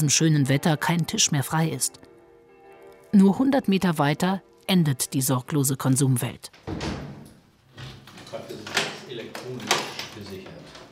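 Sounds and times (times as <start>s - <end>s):
speech: 0.0s - 2.1s, 3.1s - 6.9s
door being unlocked and opened: 6.5s - 10.9s.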